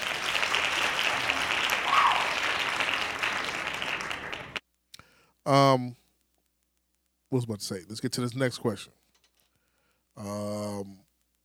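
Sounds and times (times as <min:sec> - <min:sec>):
hand clap sound effect: 0:00.0 - 0:05.1
speech: 0:05.5 - 0:06.0, 0:07.3 - 0:09.0, 0:10.2 - 0:11.0.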